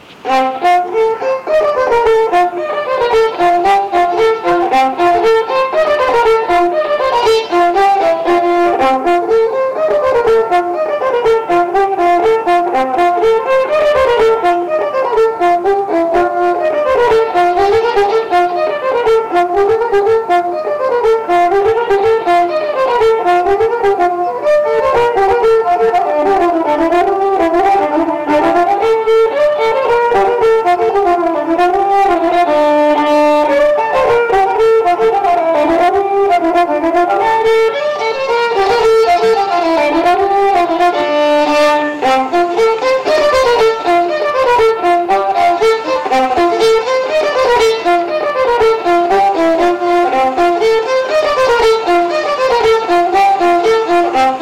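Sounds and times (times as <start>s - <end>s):
popular folk dance music from Vaslui: 0.0s - 54.4s.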